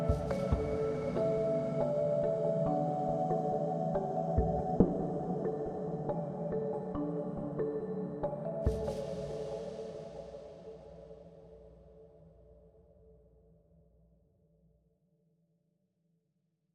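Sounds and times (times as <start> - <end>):
desert music: 0.0 - 11.7.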